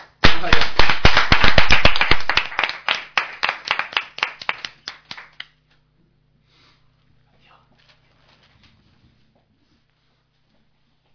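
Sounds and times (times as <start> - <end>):
applause: 0.0 - 5.6.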